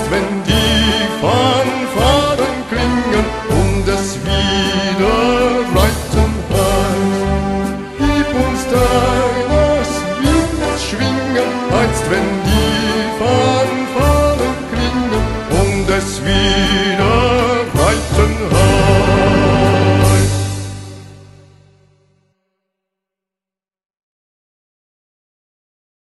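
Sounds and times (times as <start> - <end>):
person singing a rider's song: 0.0 - 20.8.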